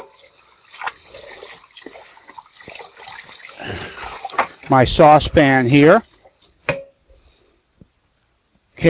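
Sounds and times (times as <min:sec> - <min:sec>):
running tap water as hands are washed: 0:00.0 - 0:06.4
speech: 0:04.7 - 0:06.1.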